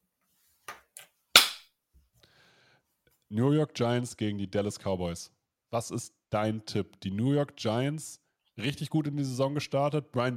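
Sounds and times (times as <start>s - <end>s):
single hand clap: 1.4s - 1.6s
speech: 3.3s - 10.3s.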